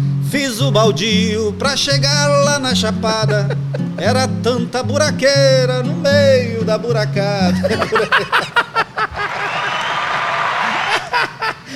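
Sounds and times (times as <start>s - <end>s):
speech: 0.3s - 8.6s
chuckling laughter: 3.0s - 4.3s, 7.5s - 11.7s
applause sound effect: 9.2s - 11.1s.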